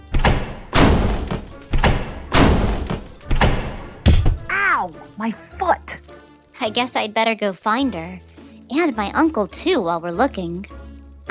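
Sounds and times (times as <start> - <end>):
heavy booming slam sound effects: 0.0 - 4.5
speech: 4.8 - 6.0, 6.6 - 11.2.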